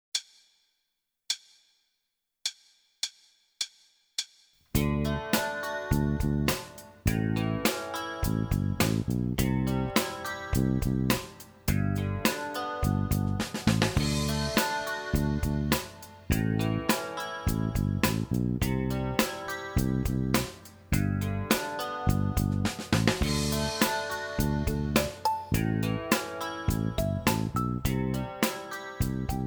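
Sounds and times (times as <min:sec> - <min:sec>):
rock drum pattern in eighth notes: 0:04.8 - 0:29.4.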